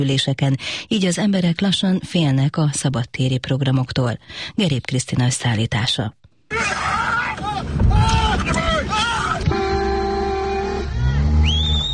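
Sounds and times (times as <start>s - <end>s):
speech: 0.0s - 7.0s
people shouting to chase off a mother bear: 6.5s - 11.4s
car horns honking: 8.3s - 11.9s.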